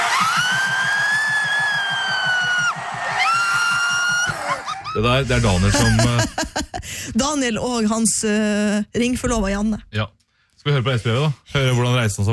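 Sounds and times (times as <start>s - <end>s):
laughter: 0.1s - 6.9s
man screaming as a goal is scored: 4.1s - 6.1s
speech: 5.0s - 12.3s.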